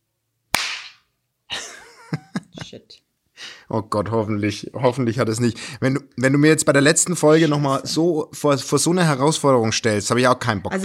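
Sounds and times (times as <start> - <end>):
single hand clap for track sync: 0.5 - 1.1
speech: 2.7 - 3.1, 3.7 - 10.8.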